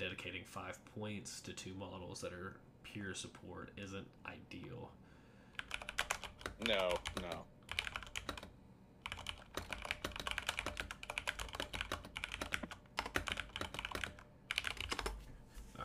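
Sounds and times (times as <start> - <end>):
speech: 0.0 - 5.0, 6.6 - 7.6
typing on a keyboard: 5.6 - 15.2.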